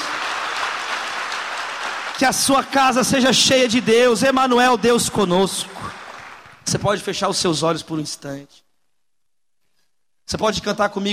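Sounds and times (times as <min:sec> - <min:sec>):
crowd applause: 0:00.0 - 0:06.7
speech: 0:02.2 - 0:06.0, 0:06.7 - 0:08.6, 0:10.3 - 0:11.1.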